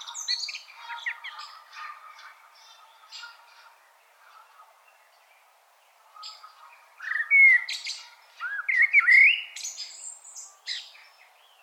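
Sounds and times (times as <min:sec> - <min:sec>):
common blackbird song: 0:00.0 - 0:11.6.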